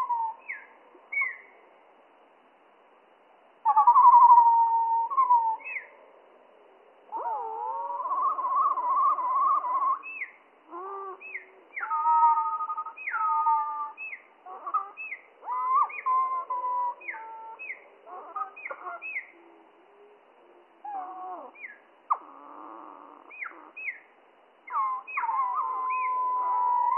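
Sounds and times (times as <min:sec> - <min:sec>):
slowed spotted flycatcher song: 0:00.0 - 0:02.0, 0:03.3 - 0:26.9.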